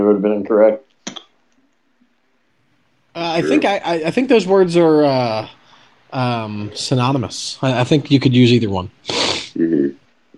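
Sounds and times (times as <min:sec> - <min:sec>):
speech: 0:00.0 - 0:00.9, 0:03.4 - 0:10.0
sniffle: 0:09.1 - 0:09.6.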